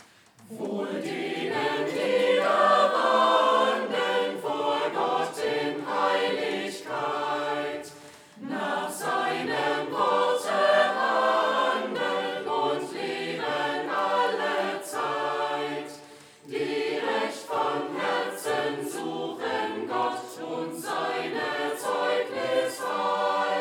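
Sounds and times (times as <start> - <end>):
choir singing: 0.4 - 23.5.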